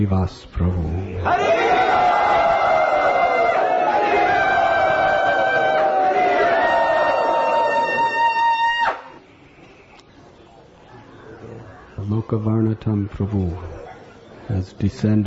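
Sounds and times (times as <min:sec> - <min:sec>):
speech: 0:00.0 - 0:01.7, 0:12.3 - 0:13.8, 0:14.5 - 0:15.2
crowd at an ISKCON temple gathering cheering to welcome a speaker: 0:01.2 - 0:09.2.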